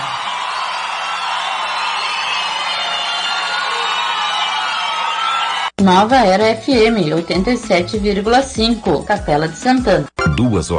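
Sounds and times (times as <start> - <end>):
crowd applauding and cheering: 0.0 - 5.8
speech: 5.8 - 10.7.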